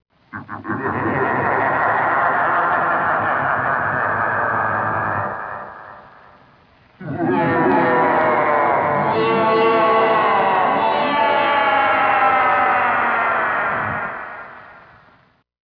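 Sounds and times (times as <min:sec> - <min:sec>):
laughter: 0:00.4 - 0:06.4, 0:07.0 - 0:14.5
song: 0:07.0 - 0:12.8.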